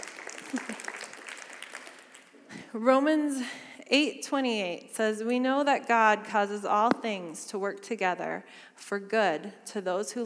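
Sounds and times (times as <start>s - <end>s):
audience clapping: 0.0s - 2.4s
speech: 2.8s - 10.2s.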